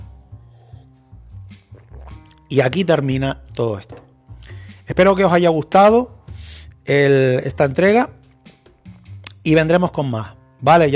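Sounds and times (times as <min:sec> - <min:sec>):
sipping a mouthful of water: 0:00.0 - 0:02.6, 0:03.4 - 0:04.9
speech: 0:02.5 - 0:04.0, 0:04.9 - 0:06.2, 0:06.9 - 0:08.2, 0:09.5 - 0:10.9.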